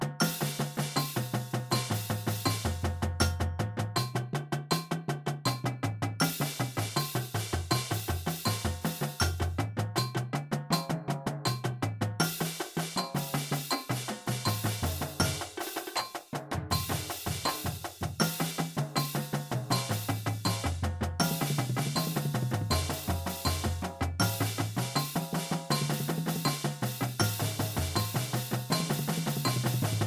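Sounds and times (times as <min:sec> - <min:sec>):
drumline playing a drum exercise at 80bpm: 0:00.0 - 0:30.0.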